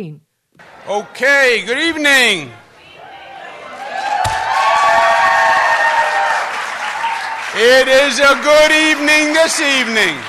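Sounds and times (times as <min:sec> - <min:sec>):
speech: 0:00.0 - 0:02.6, 0:07.6 - 0:10.2
crowd cheering and applauding at signing of New York's abortion bill: 0:02.8 - 0:10.2.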